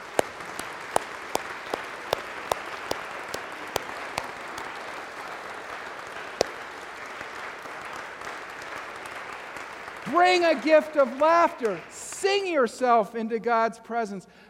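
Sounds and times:
audience applauding: 0:00.0 - 0:10.1
speech: 0:10.1 - 0:14.4.

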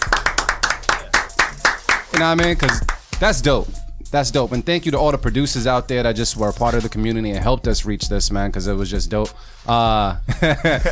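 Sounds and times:
hosts clapping hands in applause: 0:00.0 - 0:03.2
speech: 0:02.2 - 0:10.8
laughter: 0:10.3 - 0:10.8.

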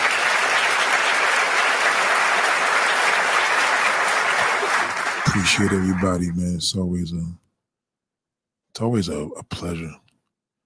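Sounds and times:
audience applause: 0:00.0 - 0:06.4
speech: 0:05.4 - 0:07.4, 0:08.8 - 0:10.0.

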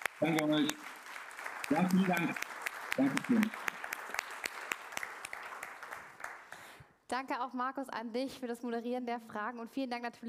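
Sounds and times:
audience applauding: 0:00.0 - 0:06.8
speech: 0:00.2 - 0:01.0, 0:01.7 - 0:03.7, 0:07.1 - 0:10.2.

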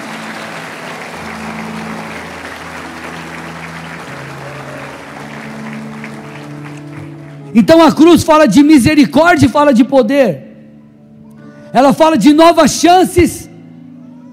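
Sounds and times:
applause: 0:00.0 - 0:08.1
speech: 0:07.6 - 0:10.4, 0:11.7 - 0:13.4.

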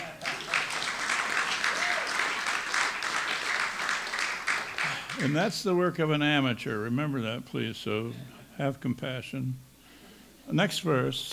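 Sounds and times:
audience applause: 0:00.0 - 0:05.4
speech: 0:05.2 - 0:09.7, 0:10.5 - 0:11.3.

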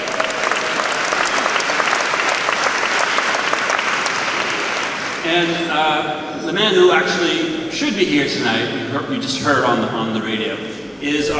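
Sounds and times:
audience applauding the senior editor and senior audio engineer: 0:00.0 - 0:05.6
speech: 0:05.3 - 0:11.3.

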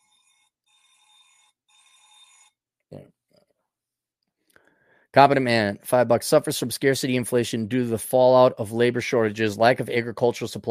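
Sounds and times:
phone alarm ringing: 0:00.0 - 0:02.6
speech: 0:02.9 - 0:03.2, 0:05.2 - 0:10.7.

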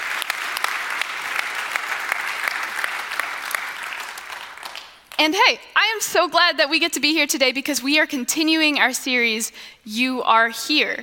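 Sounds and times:
audience applause: 0:00.0 - 0:05.1
speech: 0:05.2 - 0:11.0.

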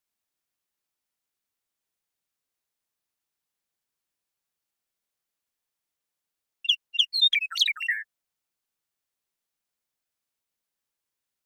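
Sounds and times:
Western meadowlark song: 0:06.6 - 0:08.1.

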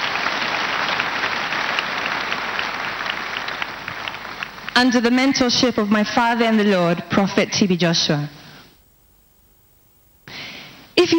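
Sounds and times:
audience clapping: 0:00.0 - 0:05.2
speech: 0:04.8 - 0:08.4.

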